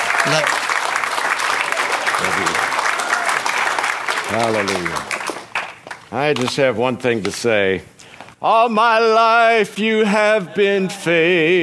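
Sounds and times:
church congregation applauding to welcome a guest speaker: 0.0s - 6.1s
speech: 0.3s - 0.6s, 4.3s - 5.2s, 6.1s - 11.6s.

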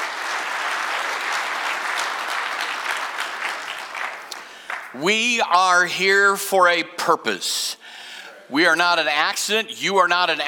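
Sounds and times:
church congregation clapping hands during a morning service: 0.0s - 5.8s
speech: 5.0s - 10.4s.

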